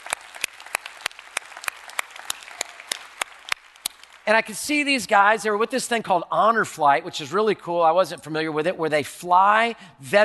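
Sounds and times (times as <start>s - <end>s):
audience cheering and applause: 0.0s - 4.2s
speech: 4.3s - 10.2s.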